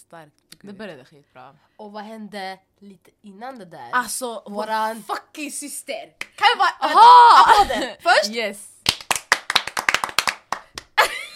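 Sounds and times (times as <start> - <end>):
speech: 0.1 - 8.8
hands clapping in applause: 6.2 - 6.5, 8.8 - 11.3
laughter: 11.0 - 11.3.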